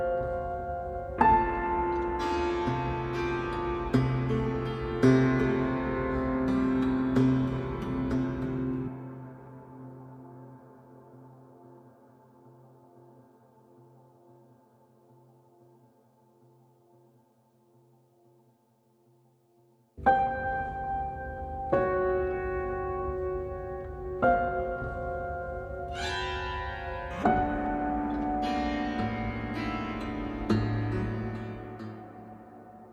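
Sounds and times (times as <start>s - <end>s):
solo piano: 0.0s - 9.1s, 20.0s - 32.4s.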